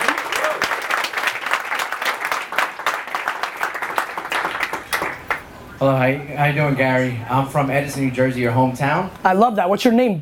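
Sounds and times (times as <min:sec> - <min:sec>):
crowd applauding: 0:00.0 - 0:05.5
speech: 0:05.8 - 0:10.2.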